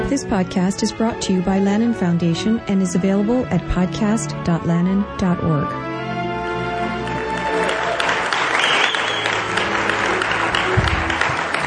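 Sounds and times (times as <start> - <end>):
speech: 0.1 - 5.9
audience clapping: 6.9 - 11.6.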